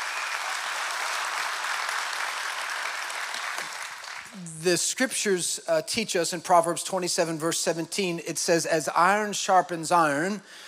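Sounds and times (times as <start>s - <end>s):
audience applause: 0.0s - 4.4s
speech: 4.4s - 10.6s.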